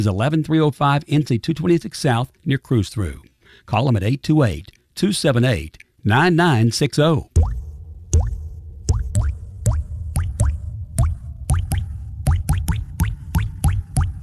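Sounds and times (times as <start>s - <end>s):
speech: 0.0s - 7.6s
water dripping from a plumbing leak: 5.7s - 6.0s, 7.4s - 14.2s.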